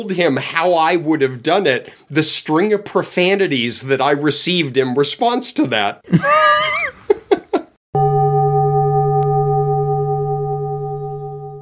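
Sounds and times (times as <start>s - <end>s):
speech: 0.0s - 7.2s
gong: 8.0s - 11.5s.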